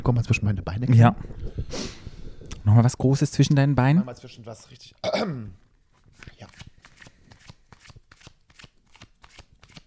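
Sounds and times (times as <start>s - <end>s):
speech: 0.0s - 2.0s, 2.6s - 5.6s, 6.2s - 6.7s
deck of cards shuffled by hand: 6.0s - 9.8s.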